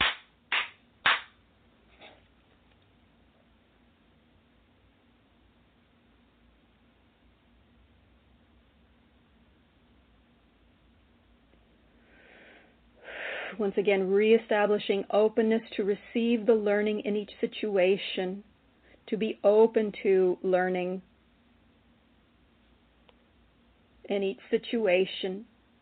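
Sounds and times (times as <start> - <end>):
hand claps: 0.0 - 1.4
soft breathy exhalations: 12.0 - 13.6
speech: 13.6 - 18.5, 19.1 - 21.1, 24.1 - 25.5.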